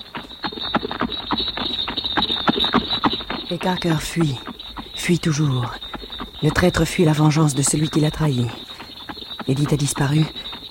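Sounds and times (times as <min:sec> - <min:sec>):
horse hooves clip-clopping: 0:00.0 - 0:10.6
speech: 0:03.5 - 0:04.5, 0:05.1 - 0:05.8, 0:06.4 - 0:08.6, 0:09.5 - 0:10.4.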